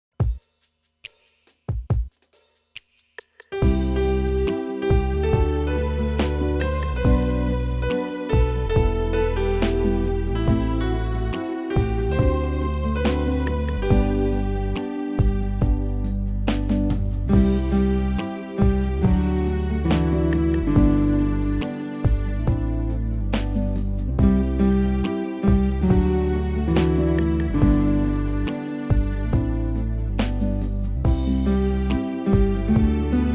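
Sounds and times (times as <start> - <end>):
instrumental background music: 0.2 - 33.3.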